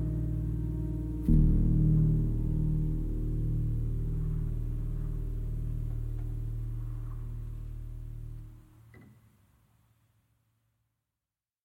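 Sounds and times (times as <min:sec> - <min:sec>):
piano: 0:00.0 - 0:09.1.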